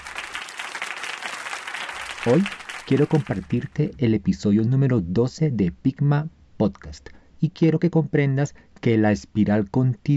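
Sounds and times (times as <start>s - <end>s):
group applauding: 0.0s - 3.9s
speech: 2.2s - 10.1s.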